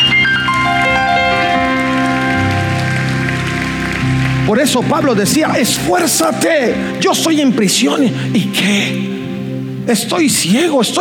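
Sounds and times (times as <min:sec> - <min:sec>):
audience applauding loudly: 0:00.0 - 0:07.0
speech: 0:04.6 - 0:09.2, 0:09.9 - 0:10.9.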